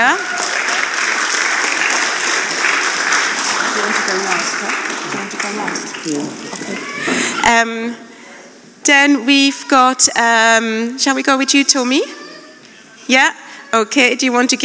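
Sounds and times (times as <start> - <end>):
audience applause: 0.0 - 7.4
speech: 6.0 - 6.6, 7.5 - 8.1, 8.9 - 12.2, 13.1 - 14.6.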